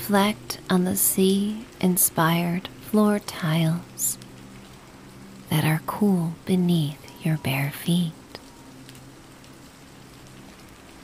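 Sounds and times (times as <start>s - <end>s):
steady rain falling: 0.0s - 11.0s
speech: 0.1s - 4.2s, 5.5s - 8.2s.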